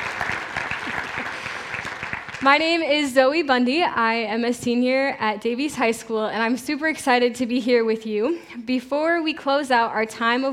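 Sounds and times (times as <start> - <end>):
audience applause: 0.0 - 2.5
speech: 2.4 - 10.5.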